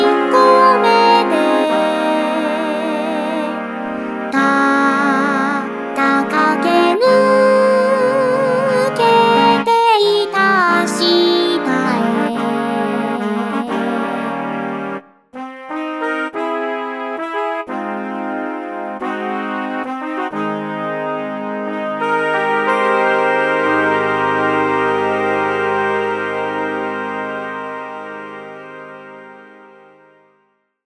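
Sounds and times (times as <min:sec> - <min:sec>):
session horn section playing: 0:00.0 - 0:30.3.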